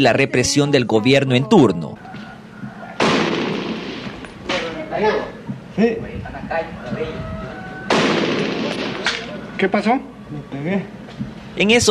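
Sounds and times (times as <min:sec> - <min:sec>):
speech: 0:00.0 - 0:02.0, 0:05.0 - 0:07.3, 0:09.6 - 0:11.0, 0:11.6 - 0:11.9
gunfire: 0:03.0 - 0:04.7, 0:07.9 - 0:09.3.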